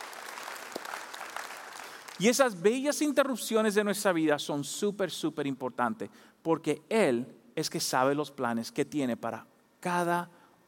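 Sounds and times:
audience applause: 0.0s - 2.2s
speech: 2.2s - 10.4s.

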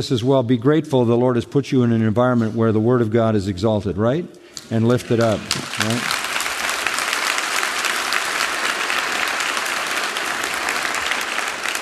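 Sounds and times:
speech: 0.0s - 6.2s
audience applause: 4.9s - 11.8s.

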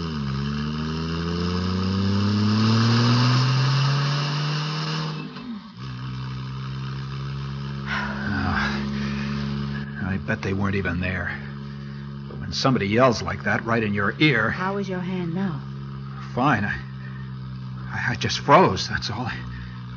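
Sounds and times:
car engine revving after shifting into drive: 0.0s - 19.9s
speech: 10.4s - 11.5s, 12.5s - 15.7s, 16.4s - 16.8s, 18.1s - 19.5s.

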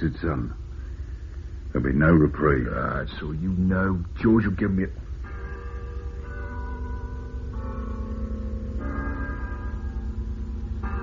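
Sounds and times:
speech: 0.0s - 0.6s, 1.7s - 5.0s
church bell striking seven o'clock: 5.2s - 11.0s.

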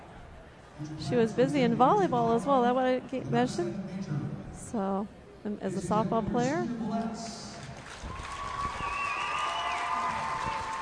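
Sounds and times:
speech: 0.8s - 7.4s
crowd applause in gym: 7.6s - 10.7s.

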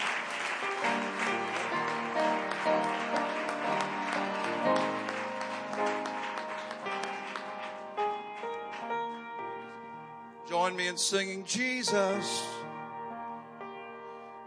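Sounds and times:
audience applause welcoming a district superintendent to the stage: 0.0s - 9.0s
speech: 10.8s - 12.6s.

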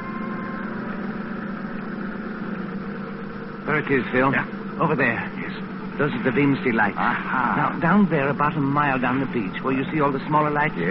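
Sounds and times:
motorboat engine idling: 0.0s - 10.8s
speech: 3.7s - 10.8s.

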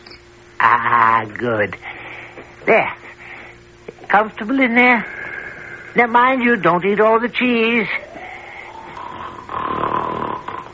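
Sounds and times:
speech: 0.6s - 3.1s, 4.1s - 5.2s, 6.0s - 8.0s
loud roaring snoring: 8.7s - 10.7s.

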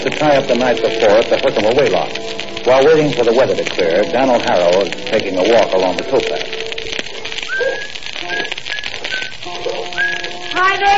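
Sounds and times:
speech: 0.0s - 6.5s
clattering hissy noise: 0.0s - 10.9s
person whistling a light broken tune: 7.4s - 10.4s.

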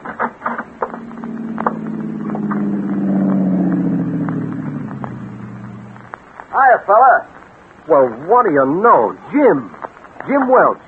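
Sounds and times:
tires crunching and rattling on rough dirt road: 0.0s - 10.8s
car engine droning on a dusty road: 0.4s - 6.4s
speech: 6.7s - 7.3s, 7.9s - 10.8s.

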